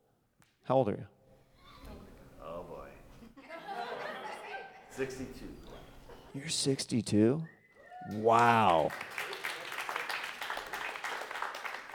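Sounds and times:
speech: 0:00.7 - 0:01.2, 0:05.0 - 0:09.2
laughter: 0:03.2 - 0:06.4
crowd applause: 0:08.0 - 0:11.9.

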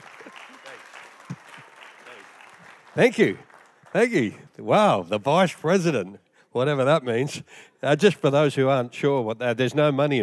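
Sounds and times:
church congregation clapping at a morning service to welcome a visiting pastor: 0:00.0 - 0:04.9
speech: 0:03.0 - 0:10.2.

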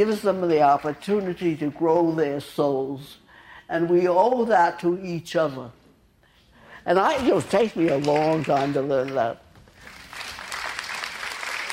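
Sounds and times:
audience clapping: 0:00.0 - 0:01.8, 0:07.2 - 0:11.7
speech: 0:00.0 - 0:05.8, 0:06.8 - 0:09.4.

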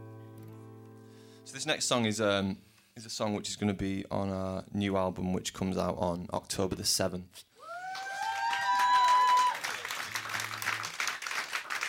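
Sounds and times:
speech: 0:01.5 - 0:07.5
crowd cheering: 0:07.6 - 0:11.8
audience clapping: 0:07.8 - 0:11.8.

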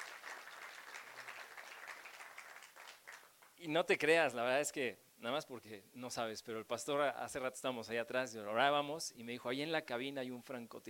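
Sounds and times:
audience applauding loudly: 0:00.0 - 0:03.6
speech: 0:03.6 - 0:10.8.

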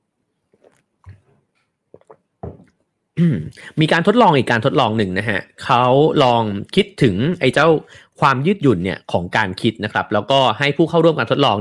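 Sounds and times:
person sipping water: 0:00.4 - 0:02.8
speech: 0:03.2 - 0:11.5.

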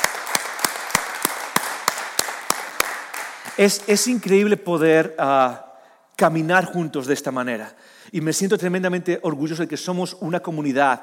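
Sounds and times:
applause: 0:00.0 - 0:04.4
speech: 0:03.6 - 0:11.0.

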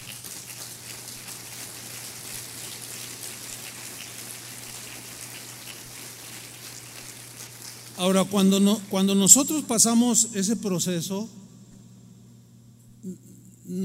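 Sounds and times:
audience applause: 0:00.0 - 0:08.5
speech: 0:08.0 - 0:11.4, 0:13.1 - 0:13.8.

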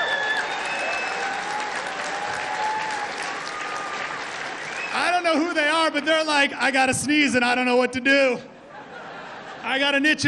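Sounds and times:
faint whistles and cheers: 0:00.0 - 0:05.4
crowd applauding: 0:00.0 - 0:05.5
speech: 0:05.2 - 0:08.5, 0:09.6 - 0:10.2
laughter: 0:08.6 - 0:10.2.

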